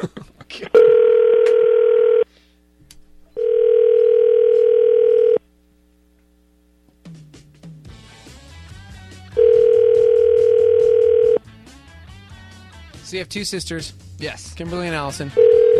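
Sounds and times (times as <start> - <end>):
speech: 0.0 - 0.8, 13.2 - 15.7
phone line ringback tones, call unanswered: 0.8 - 2.3, 3.4 - 5.4, 9.4 - 11.4, 15.3 - 15.7.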